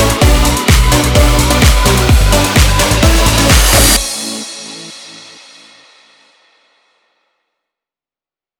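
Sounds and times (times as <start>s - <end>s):
electronic house techno music: 0.0s - 5.5s.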